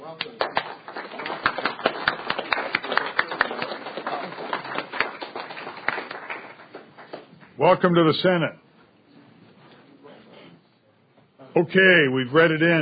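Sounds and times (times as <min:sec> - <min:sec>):
audience applause: 0:00.2 - 0:07.4
speech: 0:07.6 - 0:08.6, 0:11.6 - 0:12.8.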